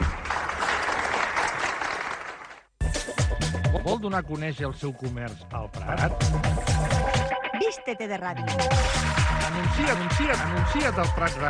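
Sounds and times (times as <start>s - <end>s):
applause: 0.0s - 2.7s
speech: 3.9s - 11.4s.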